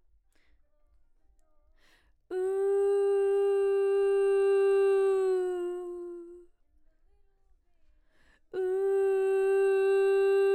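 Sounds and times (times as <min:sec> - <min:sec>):
background vocals: 0:02.3 - 0:06.5, 0:08.5 - 0:10.5.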